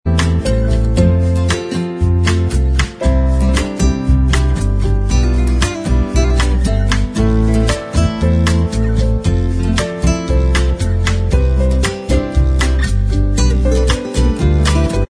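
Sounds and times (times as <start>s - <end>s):
bossa nova instrumental backing track: 0.1s - 15.0s.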